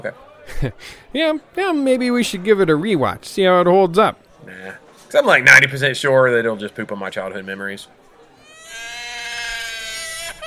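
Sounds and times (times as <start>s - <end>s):
speech: 0.0s - 8.0s
child screaming: 8.5s - 10.4s.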